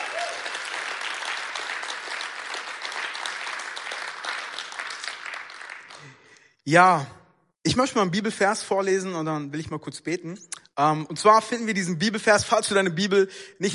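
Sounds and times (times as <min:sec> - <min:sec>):
audience applause: 0:00.0 - 0:06.3
speech: 0:06.6 - 0:13.7.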